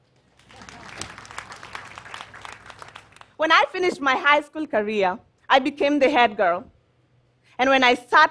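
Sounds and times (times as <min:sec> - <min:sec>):
audience applause: 0:00.4 - 0:03.4
speech: 0:03.4 - 0:06.7, 0:07.6 - 0:08.2.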